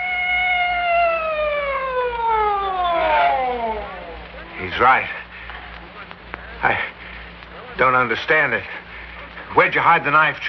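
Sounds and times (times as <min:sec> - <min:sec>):
police siren sound effect wailing in radio drama: 0:00.0 - 0:04.6
speech: 0:04.8 - 0:05.2, 0:06.6 - 0:06.9, 0:07.8 - 0:08.8, 0:09.5 - 0:10.4.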